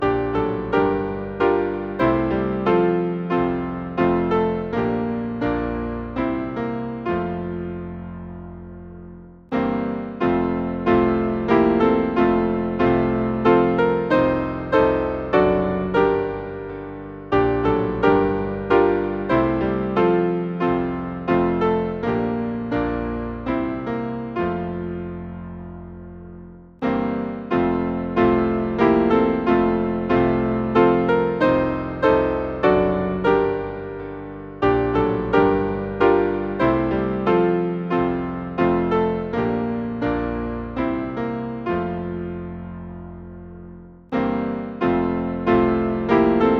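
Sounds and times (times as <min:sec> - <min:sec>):
hymn on piano: 0:00.0 - 0:46.5.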